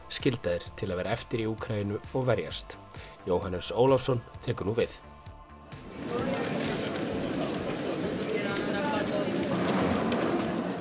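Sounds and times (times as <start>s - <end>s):
speech: 0.1s - 5.1s
murmur of many voices at a railway station: 5.9s - 10.7s
scattered clatter: 6.1s - 10.7s.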